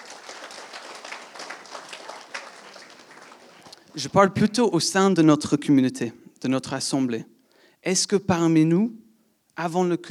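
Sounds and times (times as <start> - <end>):
audience applause: 0.0 - 4.0
speech: 4.0 - 9.0, 9.6 - 10.0.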